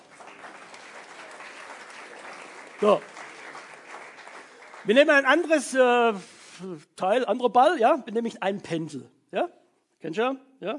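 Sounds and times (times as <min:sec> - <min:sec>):
audience applause: 0:00.0 - 0:05.8
speech: 0:02.8 - 0:03.1, 0:04.8 - 0:10.7.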